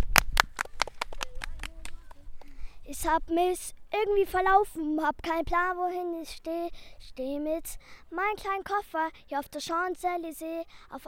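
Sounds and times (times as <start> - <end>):
audience applause: 0.0 - 2.2
speech: 2.9 - 11.0.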